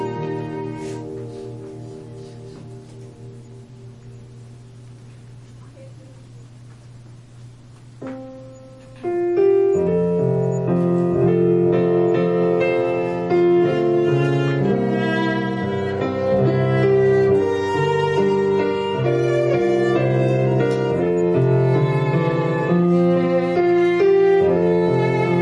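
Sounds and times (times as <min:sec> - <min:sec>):
violin playing a prelude: 0:00.0 - 0:02.3, 0:09.8 - 0:25.4
piano playing a prelude: 0:00.0 - 0:25.4.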